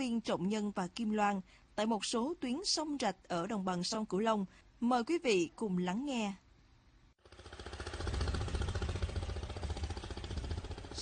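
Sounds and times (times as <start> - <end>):
speech: 0.0 - 6.4
small motorboat engines on a canal: 7.3 - 10.9.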